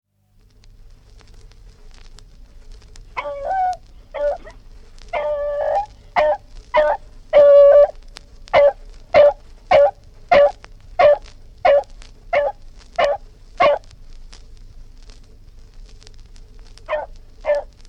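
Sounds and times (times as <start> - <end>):
dog barking: 3.2 - 13.9, 16.9 - 17.8.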